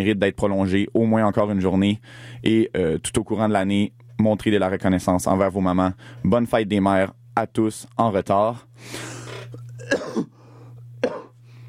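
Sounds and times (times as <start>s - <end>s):
speech: 0.0s - 10.3s
cough: 9.3s - 10.4s, 11.0s - 11.4s.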